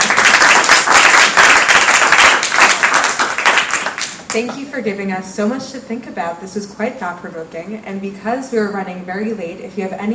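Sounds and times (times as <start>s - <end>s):
round of applause for panelists: 0.0s - 4.3s
speech: 4.4s - 10.1s.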